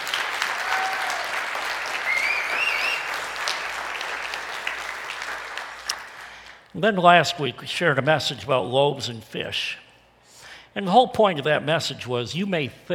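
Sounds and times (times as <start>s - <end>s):
audience applause: 0.0s - 6.5s
speech: 6.8s - 9.8s, 10.8s - 12.9s.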